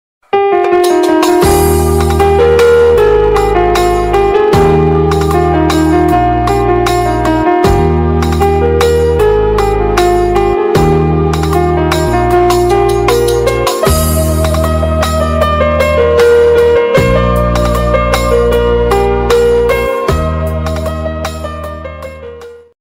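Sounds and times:
piano ringtone: 0.3s - 22.7s.

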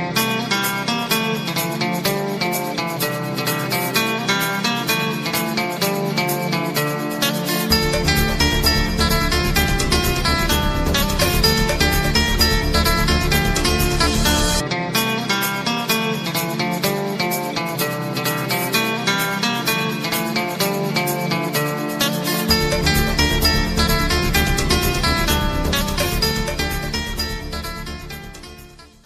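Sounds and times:
instrumental love background music ringtone: 0.2s - 29.0s.

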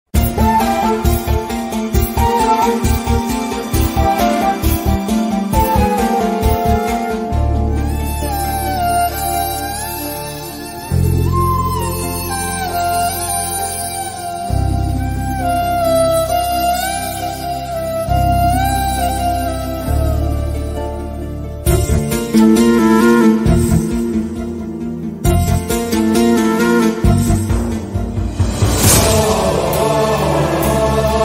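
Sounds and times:
sad violin background music: 0.2s - 30.9s.

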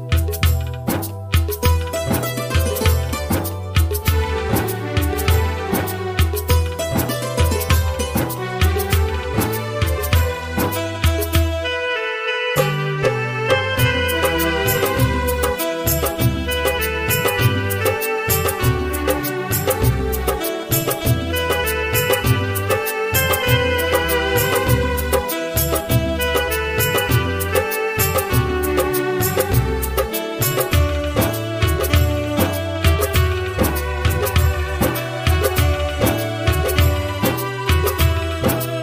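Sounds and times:
old 90s Hindi song instrumental flute ringtone: 0.2s - 38.7s.

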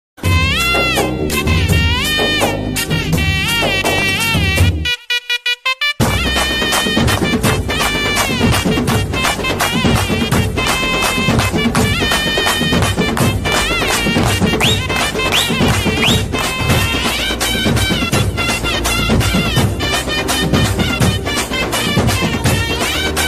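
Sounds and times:
Tamil ringtone: 0.2s - 23.2s.

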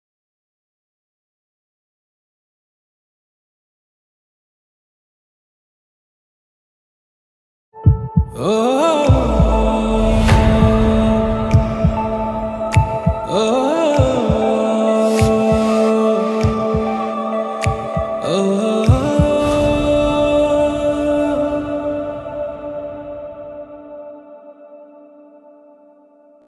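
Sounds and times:
Telugu love background music: 7.8s - 26.4s.

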